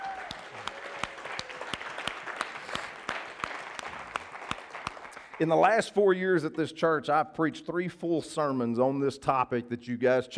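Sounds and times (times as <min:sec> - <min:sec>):
audience applause: 0:00.0 - 0:05.5
speech: 0:05.4 - 0:10.3.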